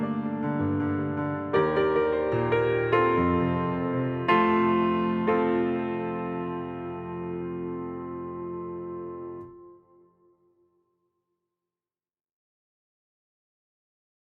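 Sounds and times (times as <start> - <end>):
instrumental music: 0.0 - 10.8.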